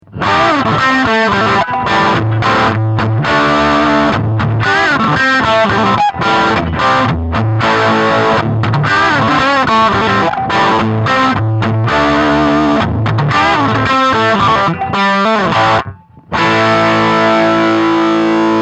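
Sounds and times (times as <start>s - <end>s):
Zoom G6 guitar effects pedal: 0.0s - 18.5s.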